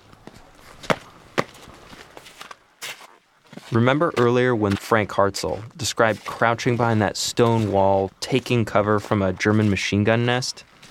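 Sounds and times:
footsteps on snow and frosty black tarmac: 0.0s - 10.8s
speech: 3.7s - 10.7s.

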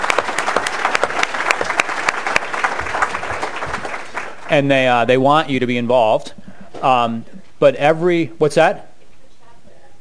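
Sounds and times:
audience applause: 0.0s - 4.7s
speech: 4.5s - 8.9s.

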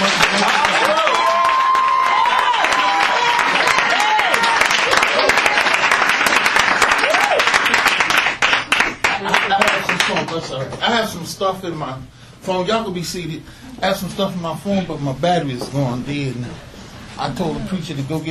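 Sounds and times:
cheering and excited voices: 0.0s - 6.0s, 6.8s - 7.7s
room full of people clapping: 0.0s - 10.8s
speech: 11.4s - 18.2s.

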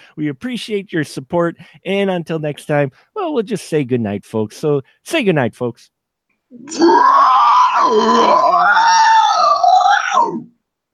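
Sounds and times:
speech: 0.2s - 9.5s, 10.1s - 10.5s
person imitating Godzilla's roar: 6.6s - 10.5s.

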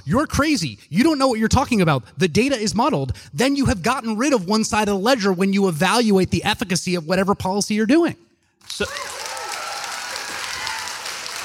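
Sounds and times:
speech: 0.0s - 9.2s
crowd in Austin applauding and cheering: 8.6s - 11.4s.

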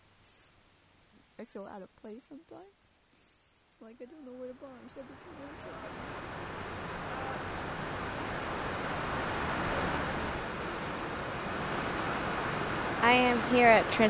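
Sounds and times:
speech: 1.4s - 2.8s, 3.8s - 7.6s, 13.0s - 14.0s
rain falling: 3.8s - 14.0s.

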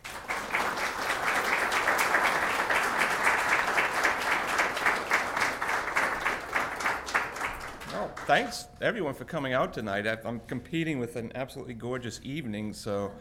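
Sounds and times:
audience applause welcoming an author at a book event: 0.0s - 8.5s
speech: 8.3s - 13.1s.

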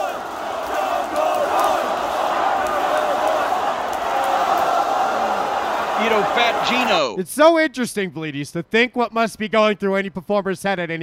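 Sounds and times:
live crowd of fans shouting: 0.0s - 7.1s
speech: 6.4s - 11.0s.

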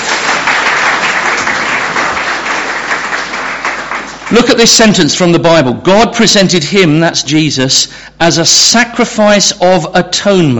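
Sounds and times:
audience applause: 0.0s - 4.6s
speech: 4.3s - 10.5s.

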